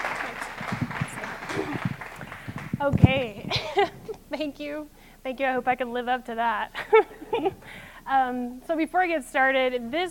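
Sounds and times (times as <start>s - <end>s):
audience round of applause: 0.0s - 2.8s
speech: 2.8s - 10.0s.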